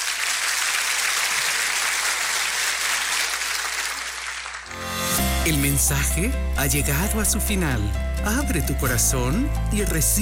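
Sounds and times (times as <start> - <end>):
audience applause: 0.0 - 4.8
speech: 5.5 - 10.2.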